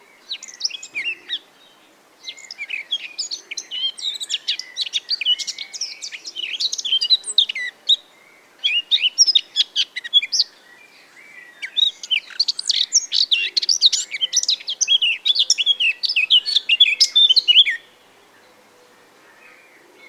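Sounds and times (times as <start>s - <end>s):
Eurasian blackcap singing: 2.2s - 8.0s, 8.6s - 10.6s, 11.4s - 17.9s.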